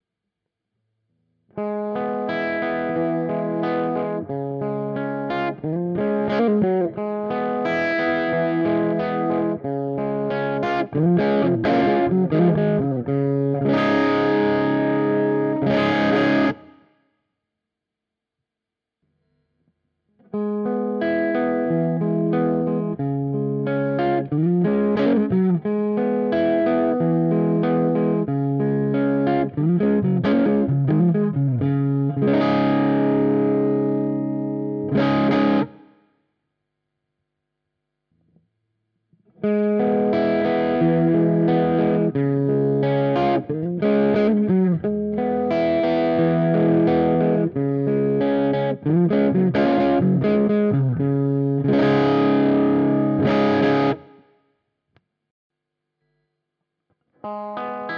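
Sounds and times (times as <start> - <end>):
Marshall chords: 1.6 - 16.7, 20.4 - 35.8, 39.4 - 54.1.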